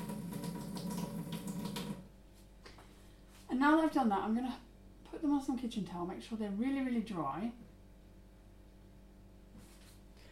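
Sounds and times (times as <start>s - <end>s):
water running from kitchen tap: 0.0s - 2.1s
speech: 3.6s - 7.7s.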